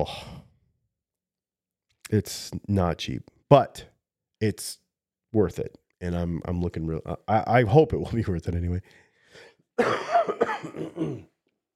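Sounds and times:
speech: 0.0s - 0.3s, 2.1s - 11.3s
harsh chesty cough: 9.8s - 11.3s
faint throat sound: 10.4s - 11.3s.

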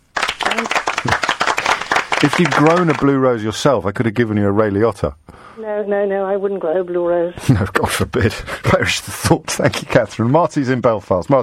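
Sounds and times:
round of applause: 0.0s - 3.2s
speech: 0.5s - 1.2s, 2.2s - 11.4s
laughter: 1.0s - 3.0s, 7.4s - 10.7s.

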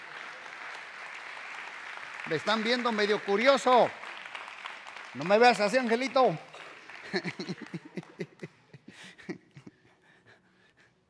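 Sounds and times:
audience applause: 0.0s - 8.7s
speech: 2.2s - 4.0s, 5.2s - 6.5s, 7.1s - 7.8s
laughter: 6.6s - 9.9s.

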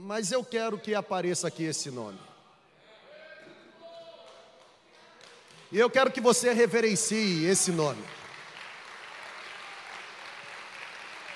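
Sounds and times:
speech: 0.1s - 2.3s, 5.7s - 8.2s
audience applause: 7.6s - 11.3s.

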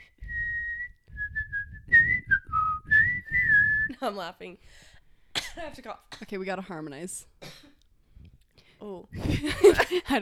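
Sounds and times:
person whistling a short tune: 0.0s - 4.0s
speech: 4.0s - 4.9s, 5.6s - 7.7s, 8.8s - 10.2s.

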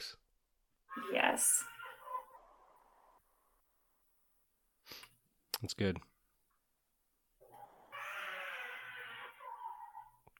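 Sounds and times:
baby crying: 0.9s - 2.5s, 7.5s - 10.2s
speech: 1.1s - 1.7s, 5.6s - 6.1s.

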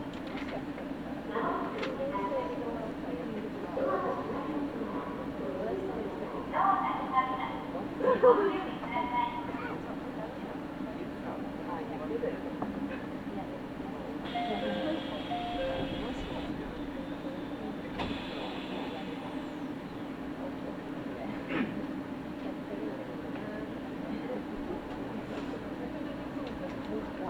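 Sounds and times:
voices: 0.0s - 27.2s
local train on the Iida Line droning: 14.0s - 21.2s.

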